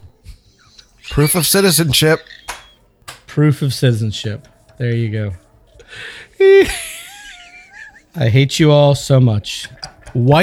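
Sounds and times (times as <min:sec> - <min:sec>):
laughter: 0:00.2 - 0:02.9, 0:05.8 - 0:08.2
ankle bracelet beeping: 0:00.5 - 0:02.9
speech: 0:01.2 - 0:02.4, 0:03.4 - 0:06.9, 0:08.2 - 0:10.4.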